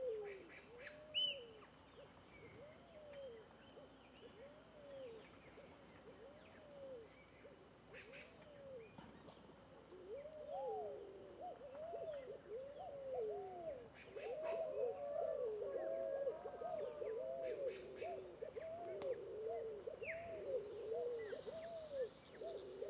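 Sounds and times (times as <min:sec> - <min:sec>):
scaled doves calling together with arched cooing notes: 0:00.0 - 0:22.8.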